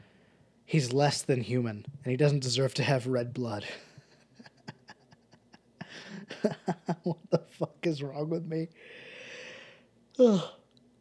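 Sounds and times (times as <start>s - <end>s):
speech: 0.7s - 3.9s, 6.4s - 9.1s, 10.2s - 10.6s
laughter: 3.8s - 7.6s
person yawning: 10.2s - 10.7s.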